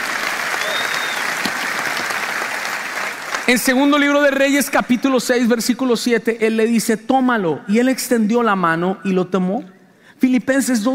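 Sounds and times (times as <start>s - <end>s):
audience applause: 0.0s - 3.6s
speech: 3.5s - 10.9s.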